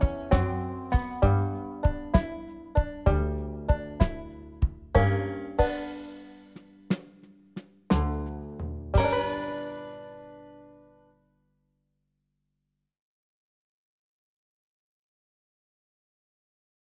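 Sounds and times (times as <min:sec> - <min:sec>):
slow country blues backing track: 0:00.0 - 0:06.6, 0:07.9 - 0:10.5.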